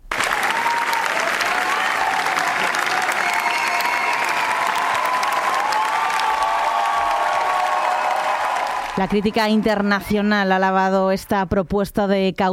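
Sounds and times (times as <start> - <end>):
prolonged audience applause and ovation at festival: 0.0 - 10.3
speech: 9.0 - 12.5.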